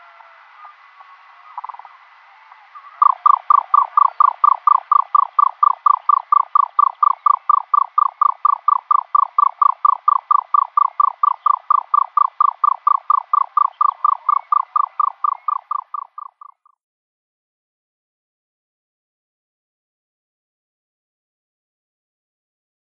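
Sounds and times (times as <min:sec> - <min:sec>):
male Egyptian Nightjar display call: 0:00.0 - 0:16.8.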